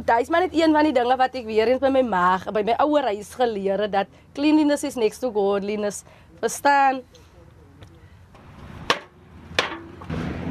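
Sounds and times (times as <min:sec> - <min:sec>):
speech: 0:00.0 - 0:07.2
hammering while building a shack roof: 0:08.4 - 0:10.4.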